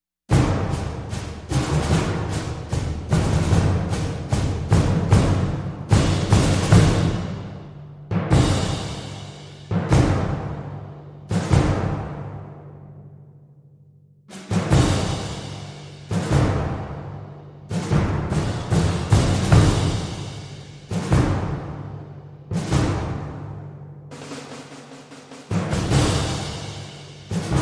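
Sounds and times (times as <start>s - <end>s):
percussion: 0.3s - 13.3s, 14.3s - 27.5s.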